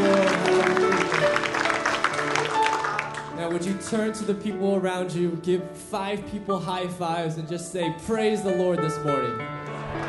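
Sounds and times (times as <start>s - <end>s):
congregation clapping during morning worship: 0.0s - 3.8s, 9.8s - 10.0s
speech: 3.9s - 9.6s.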